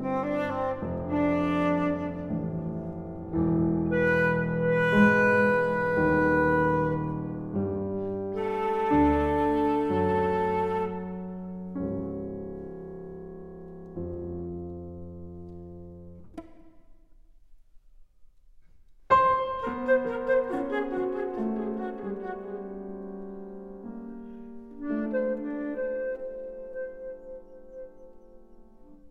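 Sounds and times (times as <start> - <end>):
flute miniatures: 0.0 - 12.8, 19.1 - 29.1.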